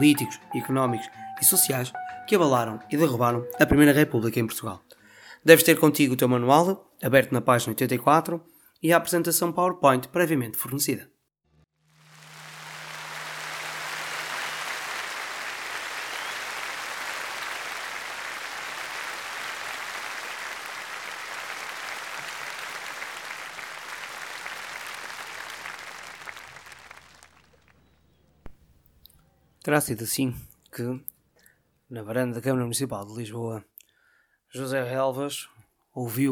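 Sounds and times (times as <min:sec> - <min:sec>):
crowd applauding and cheering: 0:00.0 - 0:03.8, 0:11.9 - 0:27.9
speech: 0:00.0 - 0:11.1, 0:29.7 - 0:31.1, 0:31.9 - 0:33.7, 0:34.5 - 0:36.3.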